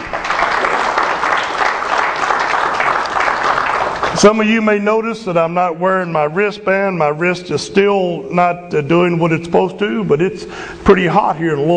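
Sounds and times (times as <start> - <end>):
audience applause: 0.0 - 4.4
speech: 4.2 - 11.7.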